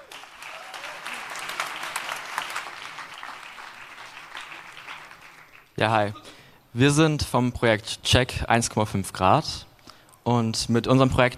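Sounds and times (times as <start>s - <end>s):
audience applause: 0.0s - 5.8s
speech: 5.8s - 9.7s, 10.3s - 11.3s.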